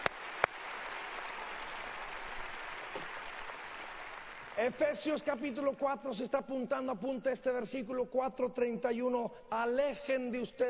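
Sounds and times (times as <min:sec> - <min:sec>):
audience applause: 0:00.0 - 0:04.6
speech: 0:04.6 - 0:10.6.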